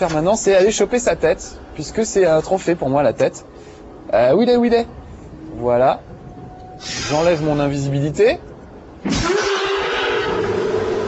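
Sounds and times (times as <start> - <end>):
speech: 0.0 - 5.0, 5.6 - 6.1, 6.8 - 9.2
predator roar in a video game: 9.1 - 11.0.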